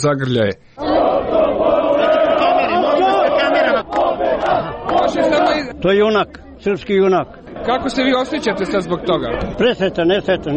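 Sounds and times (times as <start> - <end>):
speech: 0.0 - 1.0, 4.5 - 10.5
crowd of Chetnik movement supporters shouting and chanting outside the Palace of Justice: 0.8 - 10.5.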